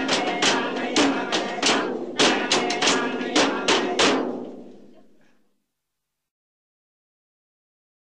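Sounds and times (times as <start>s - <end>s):
Inuit chant: 0.0s - 5.2s.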